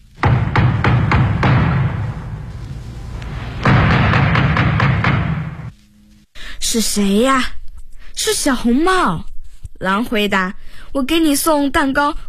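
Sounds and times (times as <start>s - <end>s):
knocking on a door: 0.2s - 2.5s, 3.3s - 5.7s
speech: 6.7s - 7.6s, 8.2s - 12.2s.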